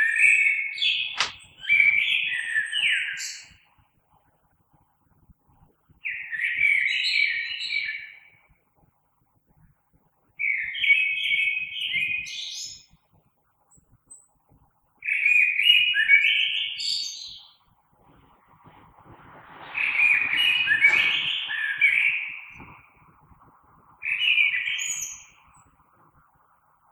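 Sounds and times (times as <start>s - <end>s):
common blackbird song: 0.0s - 3.7s, 6.0s - 8.4s, 10.4s - 13.0s, 15.0s - 17.7s, 19.2s - 23.0s, 24.0s - 25.8s
sharp click: 1.2s - 1.5s.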